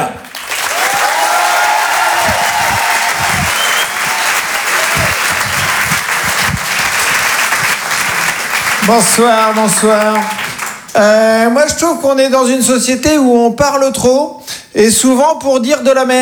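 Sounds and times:
comedy audience applause: 0:00.2 - 0:11.0
speech: 0:08.9 - 0:10.4, 0:11.0 - 0:16.2.

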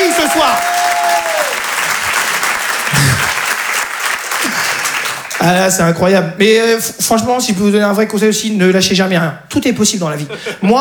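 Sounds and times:
audience applause: 0:00.0 - 0:05.8
speech: 0:05.4 - 0:10.8.

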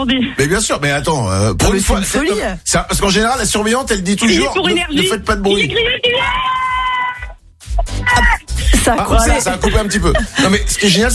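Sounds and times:
speech: 0:00.0 - 0:06.6, 0:08.9 - 0:11.1
schoolchildren shouting and screaming in a classroom: 0:06.1 - 0:07.3
laughter: 0:08.1 - 0:11.1.

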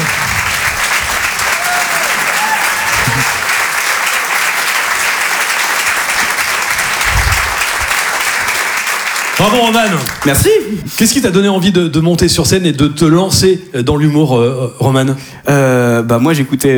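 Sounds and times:
faint cheers and murmurs: 0:00.0 - 0:08.2
audience applause: 0:00.0 - 0:10.6
speech: 0:09.4 - 0:16.7.

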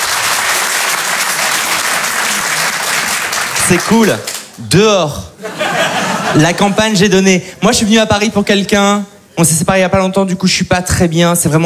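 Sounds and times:
audience applause: 0:00.0 - 0:04.6
speech: 0:03.7 - 0:05.6, 0:06.3 - 0:11.6
laughter: 0:05.4 - 0:07.2.

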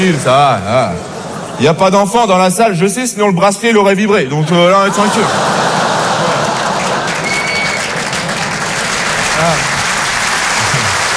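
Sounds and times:
laughter: 0:00.0 - 0:01.9, 0:04.3 - 0:11.1
speech: 0:00.0 - 0:05.6
audience applause: 0:04.8 - 0:11.1.

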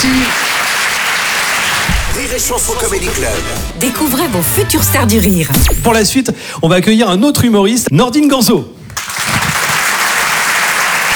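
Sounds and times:
audience applause at a comedy club: 0:00.0 - 0:02.1, 0:09.0 - 0:11.1
speech: 0:02.4 - 0:08.8.

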